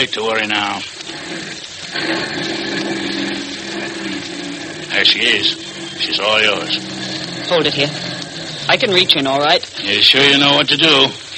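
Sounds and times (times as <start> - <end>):
speech: 0.0 - 3.0, 5.0 - 8.1, 8.7 - 11.3
armored car engine droning: 1.1 - 9.8.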